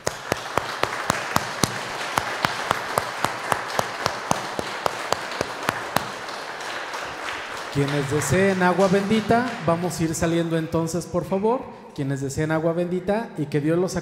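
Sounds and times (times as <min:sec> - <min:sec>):
audience applauding in church: 0:00.0 - 0:10.5
speech: 0:07.8 - 0:14.0.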